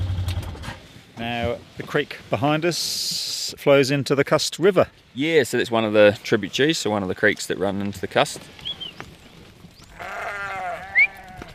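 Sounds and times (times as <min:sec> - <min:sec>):
speech: 0:01.3 - 0:08.6
ewes bleating: 0:09.9 - 0:11.5.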